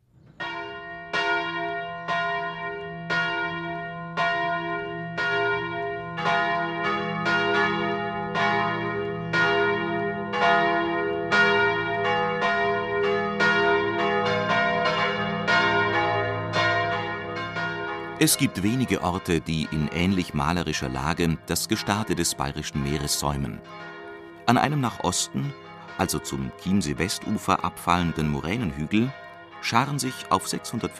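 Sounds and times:
church bells ringing the noon peal: 0.3s - 30.9s
speech: 18.2s - 30.9s.

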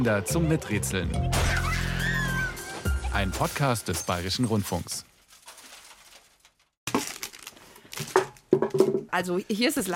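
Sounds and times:
speech: 0.0s - 1.9s, 3.2s - 5.1s, 9.2s - 9.9s
old crisps tube and plastic bottle being thrown around: 4.6s - 9.0s.

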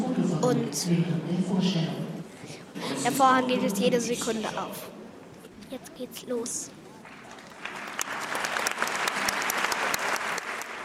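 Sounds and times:
speech: 0.5s - 2.1s, 2.8s - 5.0s, 5.7s - 6.8s
theatre audience applause: 7.0s - 10.8s.

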